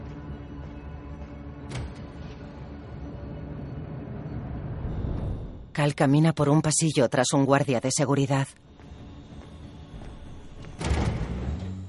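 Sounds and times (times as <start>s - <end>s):
speech: 5.8s - 8.7s
door opening: 10.4s - 11.8s.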